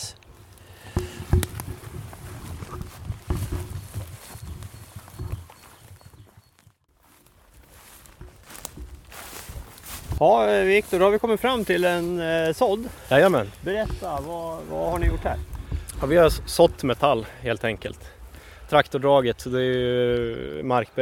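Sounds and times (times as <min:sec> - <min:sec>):
footsteps crunching on a path: 0:00.2 - 0:20.2
speech: 0:10.2 - 0:20.9.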